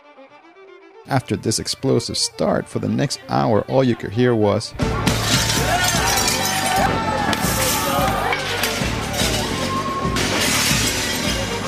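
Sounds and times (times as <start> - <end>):
speech: 1.0 - 5.3
shop windows and store glass smashed during a riot: 5.0 - 11.6
excited voices: 5.5 - 10.2.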